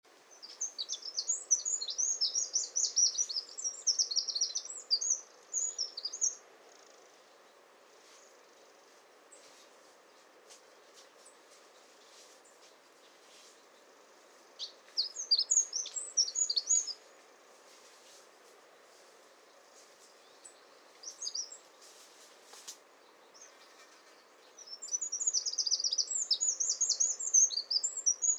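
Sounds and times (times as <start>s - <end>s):
soft background hiss: 0.1s - 28.3s
Eurasian wren singing: 0.3s - 7.0s, 14.5s - 17.1s, 20.1s - 21.7s, 23.0s - 28.3s.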